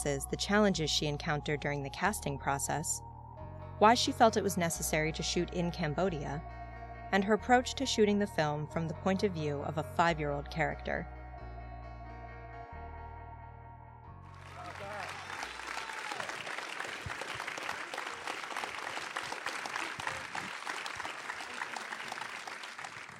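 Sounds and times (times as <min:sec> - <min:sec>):
speech: 0:00.0 - 0:03.1, 0:03.8 - 0:11.2
audience applause: 0:14.3 - 0:23.1.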